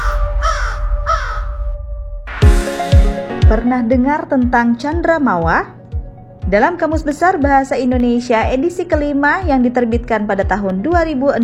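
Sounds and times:
crow cawing: 0:00.0 - 0:01.6
speech: 0:03.5 - 0:05.8, 0:06.4 - 0:11.4.

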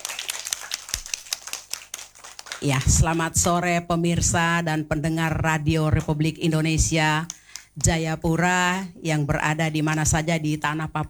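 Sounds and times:
kindergarten children clapping their hands: 0:00.0 - 0:03.6
speech: 0:02.6 - 0:11.0.

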